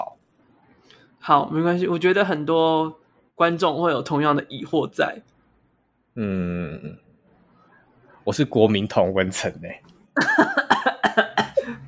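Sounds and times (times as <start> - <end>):
speech: 1.2 - 5.3, 6.2 - 7.0, 8.2 - 11.2
cough: 10.2 - 11.8.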